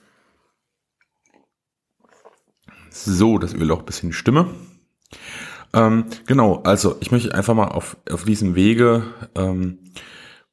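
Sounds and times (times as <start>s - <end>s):
breath: 0.0s - 0.6s, 5.1s - 5.7s, 9.9s - 10.5s
sipping and slurping coffee: 0.0s - 3.2s
speech: 2.9s - 4.7s, 5.7s - 10.1s.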